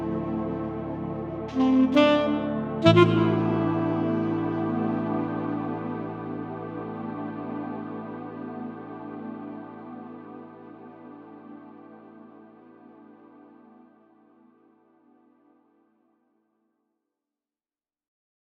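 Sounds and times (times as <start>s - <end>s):
tenor saxophone: 0.0s - 6.5s.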